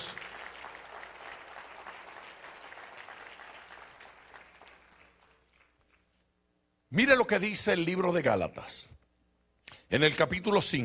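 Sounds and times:
audience clapping hands: 0:00.0 - 0:06.2
speech: 0:06.9 - 0:09.0, 0:09.9 - 0:10.8.

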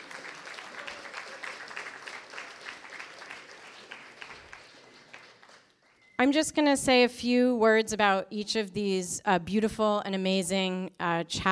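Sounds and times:
crowd clapping: 0:00.0 - 0:06.2
speech: 0:06.2 - 0:11.5.

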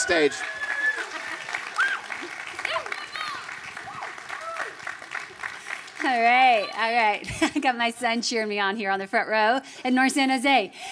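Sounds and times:
audience applause: 0:00.0 - 0:07.3
speech: 0:00.1 - 0:00.6, 0:06.0 - 0:10.9.

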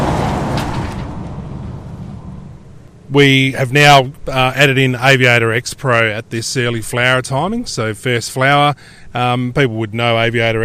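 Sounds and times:
big road train truck driving past: 0:00.0 - 0:03.9
speech: 0:03.1 - 0:10.6.

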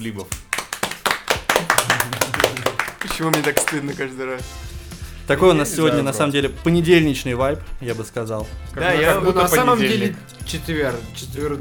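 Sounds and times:
speech: 0:00.0 - 0:00.4, 0:02.0 - 0:11.6
hosts clapping their hands: 0:00.0 - 0:04.2.

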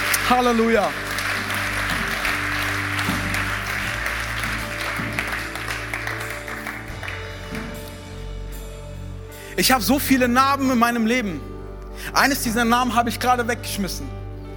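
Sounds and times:
audience applauding: 0:00.0 - 0:07.9
low sustained musical tone: 0:00.0 - 0:14.5
speech: 0:00.3 - 0:01.0, 0:09.6 - 0:14.2.

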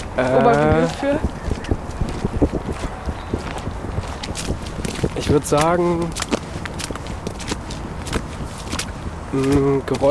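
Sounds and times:
constant low rumble: 0:00.0 - 0:09.4
footsteps of several people walking past: 0:00.0 - 0:10.0
speech: 0:00.2 - 0:01.4, 0:05.3 - 0:06.3, 0:09.3 - 0:10.0.

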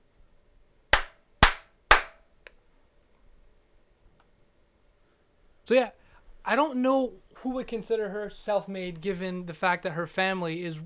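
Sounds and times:
hand clapping: 0:01.0 - 0:02.2
speech: 0:05.7 - 0:10.8.

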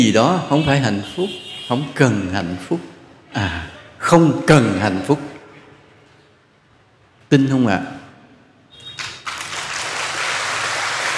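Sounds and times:
speech: 0:00.0 - 0:05.3, 0:07.3 - 0:08.0
audience clapping at a Buddhist dharma talk: 0:09.0 - 0:11.1.

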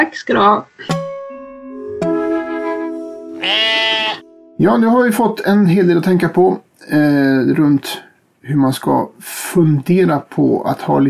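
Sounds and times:
speech: 0:00.0 - 0:01.0, 0:03.4 - 0:11.0
sheep bleating: 0:03.4 - 0:04.2.

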